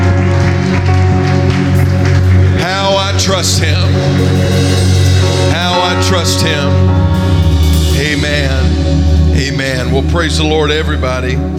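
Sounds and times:
audience clapping hands: 0.0 - 6.5
organ-like music: 0.0 - 11.5
speech: 3.4 - 4.3, 6.0 - 7.0, 9.4 - 11.5.

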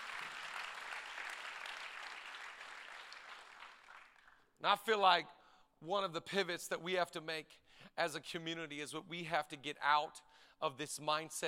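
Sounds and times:
audience clapping: 0.0 - 4.5
speech: 4.6 - 11.4.

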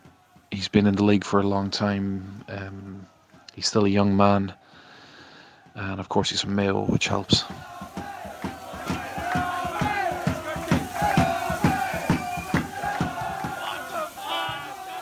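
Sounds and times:
speech: 0.6 - 4.6, 5.8 - 8.5
supporters shouting from the stands: 7.2 - 15.0.

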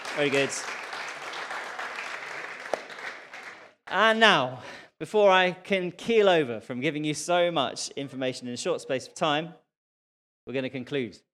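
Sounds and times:
round of applause: 0.0 - 4.2
speech: 0.2 - 0.8, 3.9 - 9.6, 10.4 - 11.3.

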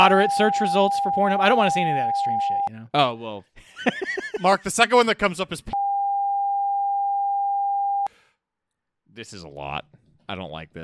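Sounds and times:
long censor beep: 0.0 - 2.7, 5.8 - 8.1
speech: 0.0 - 5.8, 9.2 - 10.8.

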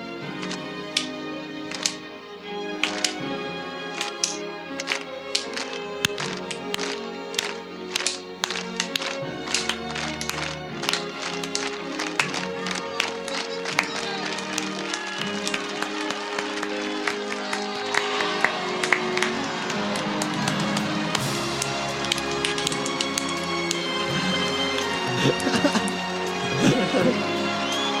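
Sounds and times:
crowd noise: 0.0 - 27.9
laughter: 0.0 - 27.9
slow clap building to applause: 0.0 - 27.9
steady tonal background: 0.0 - 27.9.

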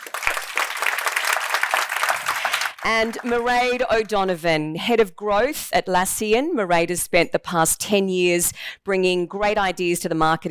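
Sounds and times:
audience applause welcoming a fintech startup CEO at a business event: 0.0 - 4.1
speech: 2.8 - 10.5.

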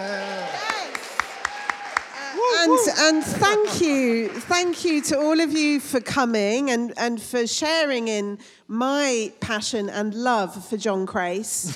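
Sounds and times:
audience cheering: 0.0 - 4.1
speech: 2.6 - 11.7.

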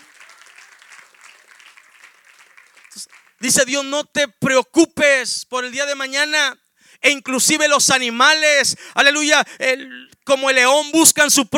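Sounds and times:
audience applauding: 0.0 - 3.7
speech: 3.0 - 11.5.

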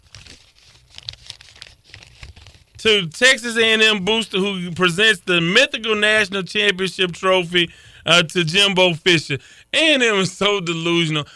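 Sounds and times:
paper envelope being torn open: 0.0 - 2.8
speech: 2.8 - 11.3.

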